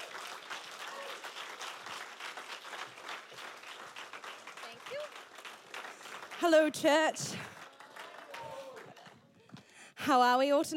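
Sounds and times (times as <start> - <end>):
church congregation clapping to welcome a speaker: 0.0 - 9.7
speech: 6.4 - 7.5, 10.1 - 10.7.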